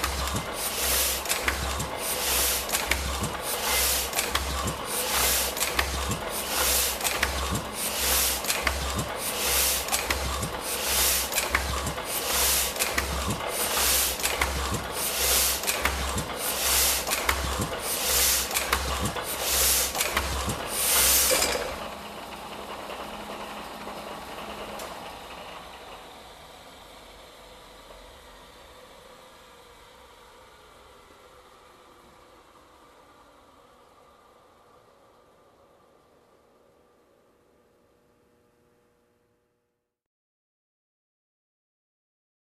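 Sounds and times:
printing press machine: 0:00.0 - 0:25.9.

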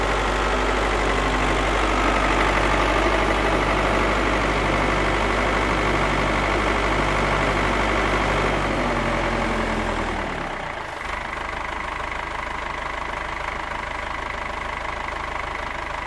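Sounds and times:
tractor passing by: 0:00.0 - 0:12.6
tractor engine starting: 0:00.0 - 0:16.0.

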